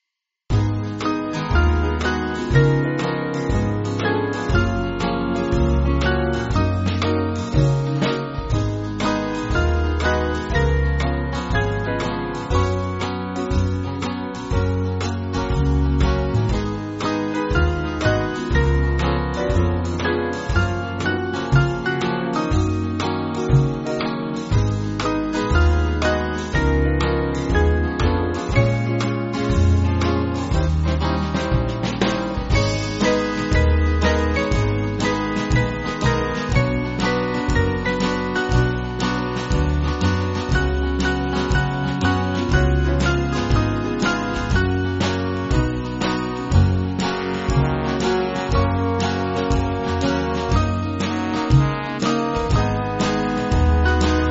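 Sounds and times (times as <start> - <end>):
band playing: 0.5 - 54.2.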